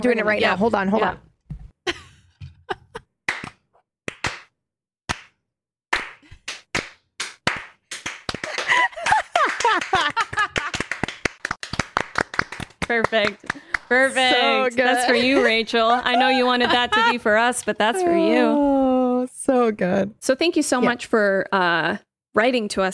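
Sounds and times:
speech: 0.0 - 1.2, 12.9 - 18.7, 19.4 - 22.9
slow clap for a standing ovation: 3.3 - 4.5, 5.1 - 14.1
laughter: 8.4 - 11.0, 14.4 - 18.6.

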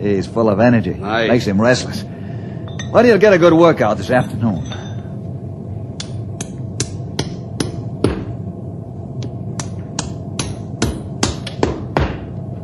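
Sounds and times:
speech: 0.0 - 2.2, 2.9 - 4.8
low rumble: 0.0 - 12.6
hammering a horseshoe onto a hoof: 9.6 - 12.3.

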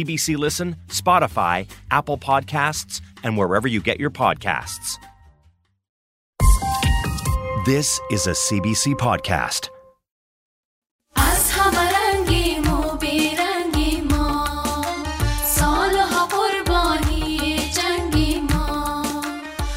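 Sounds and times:
speech: 0.0 - 5.1, 7.6 - 9.8
Afghan ensemble music performed on stage by young women: 6.4 - 7.8, 11.2 - 19.7.

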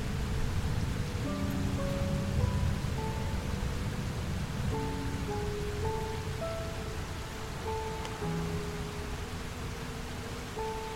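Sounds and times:
thunderstorm: 0.0 - 8.4
soft music: 0.0 - 10.9.

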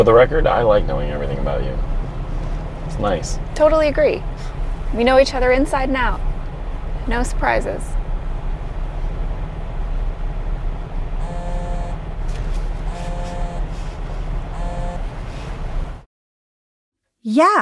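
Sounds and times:
speech: 0.0 - 2.0, 2.9 - 6.3, 7.1 - 8.0, 17.2 - 17.6
moving car rumble: 0.0 - 16.1
mobile phone buzzing in a car: 11.2 - 12.0, 12.9 - 13.9, 14.5 - 15.2.

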